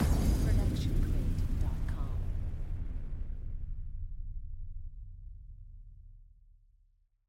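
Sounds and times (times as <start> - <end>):
cinematic hit: 0.0 - 5.2.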